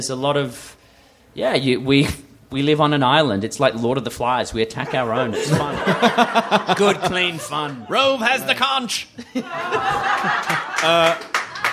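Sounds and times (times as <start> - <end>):
speech: 0.0 - 0.8, 1.4 - 11.4
laughter: 4.8 - 11.7
audience round of applause: 9.6 - 11.7.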